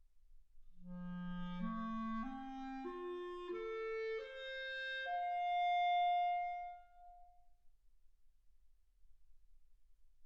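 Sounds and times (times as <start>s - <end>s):
clarinet: 0.8s - 7.4s.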